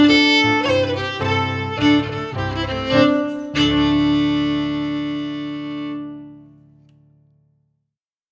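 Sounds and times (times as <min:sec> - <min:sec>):
jig on fiddle and piano: 0:00.0 - 0:06.6.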